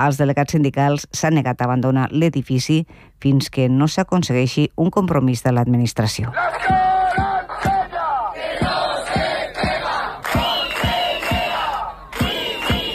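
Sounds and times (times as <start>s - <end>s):
speech: 0.0s - 7.8s
protest crowd chanting: 6.3s - 12.9s
sharp rhythmic beats: 6.4s - 12.9s.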